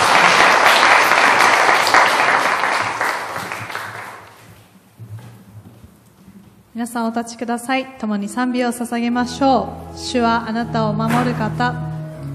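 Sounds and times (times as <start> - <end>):
audience applause: 0.0 - 4.4
speech: 6.8 - 11.9.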